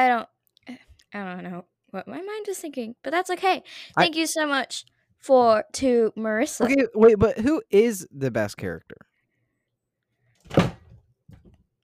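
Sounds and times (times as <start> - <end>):
speech: 0.0 - 9.1
phone dropped onto a surface: 10.5 - 11.5.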